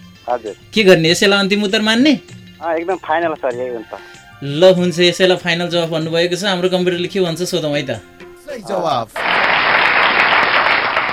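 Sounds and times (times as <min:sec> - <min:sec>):
speech: 0:00.3 - 0:09.3
applause after a correct quiz answer: 0:09.2 - 0:11.1.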